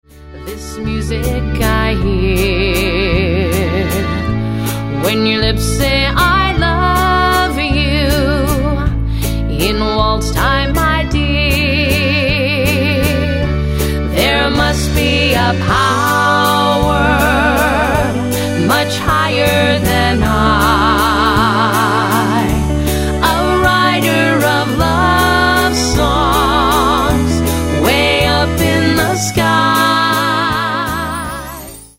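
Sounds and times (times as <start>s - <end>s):
waltz music: 0.1s - 31.9s.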